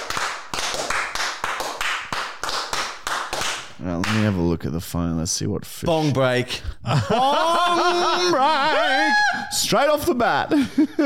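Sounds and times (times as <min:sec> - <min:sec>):
hands clapping: 0:00.0 - 0:04.4
speech: 0:03.8 - 0:11.0
laughter: 0:05.9 - 0:09.5, 0:10.3 - 0:11.0.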